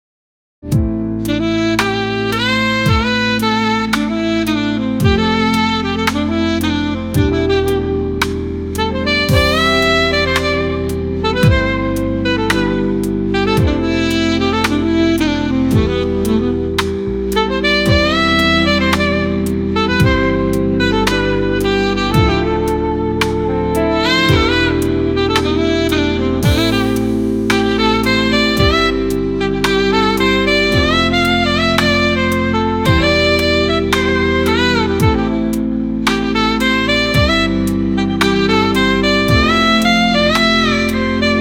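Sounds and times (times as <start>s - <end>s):
saxophone: 0.8s - 41.3s.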